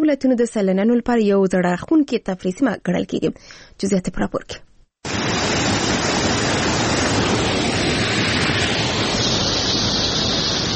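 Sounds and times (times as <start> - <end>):
speech: 0.0 - 4.7
rushing water of the Mazar Baba spring in Uruzgan: 5.0 - 10.7.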